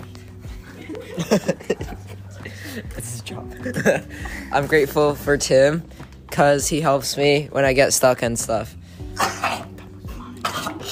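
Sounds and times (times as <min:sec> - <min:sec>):
laughter: 0:00.0 - 0:04.6
speech: 0:00.9 - 0:02.0, 0:02.8 - 0:08.8
person sneezing: 0:09.1 - 0:10.9.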